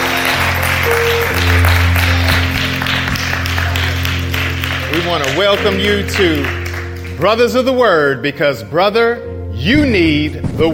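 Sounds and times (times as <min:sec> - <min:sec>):
audience hand clap of praise: 0:00.0 - 0:07.9
speech: 0:05.0 - 0:06.6, 0:07.2 - 0:10.7.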